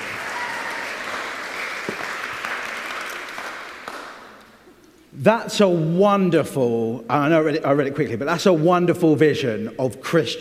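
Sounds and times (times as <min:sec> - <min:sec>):
crowd applause: 0:00.0 - 0:04.4
speech: 0:05.2 - 0:10.3.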